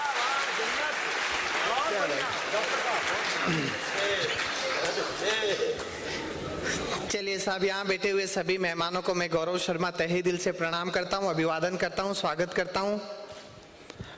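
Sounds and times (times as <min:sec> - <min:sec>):
audience applause: 0:00.0 - 0:05.7
speech: 0:02.2 - 0:13.2.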